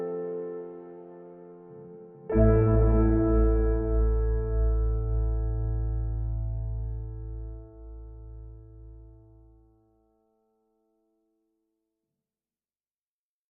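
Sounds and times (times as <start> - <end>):
piano music: 0.0 - 9.6.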